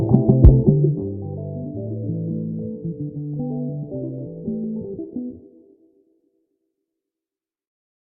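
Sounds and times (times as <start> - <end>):
Congo makossa music: 0.0 - 5.8.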